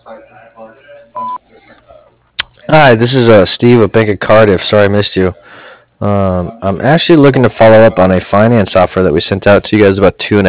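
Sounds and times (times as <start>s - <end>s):
talking: 0.0s - 10.4s
voicemail beep: 1.2s - 1.4s
speech: 2.7s - 10.4s.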